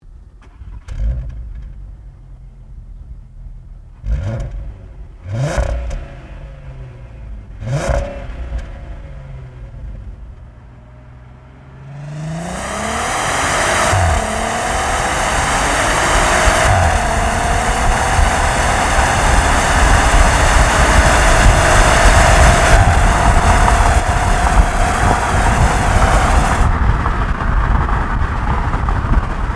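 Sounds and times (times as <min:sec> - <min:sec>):
Volkswagen Passat 3.6 SEL car engine: 0:00.0 - 0:29.5.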